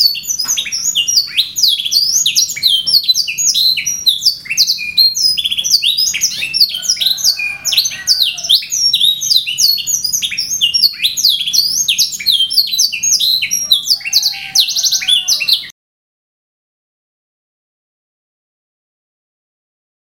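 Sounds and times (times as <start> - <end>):
canary singing: 0.0 - 15.7.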